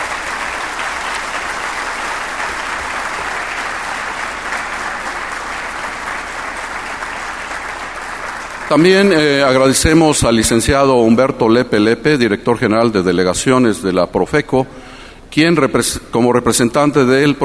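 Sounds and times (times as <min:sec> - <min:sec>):
audience applause: 0:00.0 - 0:09.5
speech: 0:08.7 - 0:14.8, 0:15.4 - 0:17.4.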